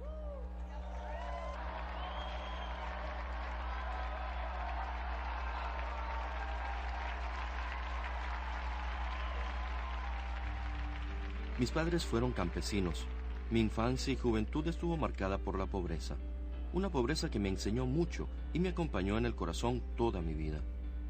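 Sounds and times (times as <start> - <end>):
audience applauding: 0.6 - 14.3
speech: 11.6 - 20.7.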